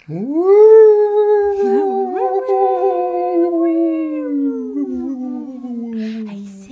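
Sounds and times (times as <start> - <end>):
voice imitating a UFO sound: 0.0 - 6.7
speech: 0.1 - 0.8
laughter: 1.5 - 3.0.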